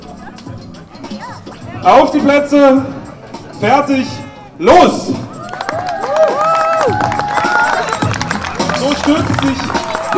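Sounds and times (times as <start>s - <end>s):
speech: 1.2s - 3.0s, 3.6s - 5.2s, 9.1s - 10.1s
crowd applauding at race start: 5.4s - 10.1s.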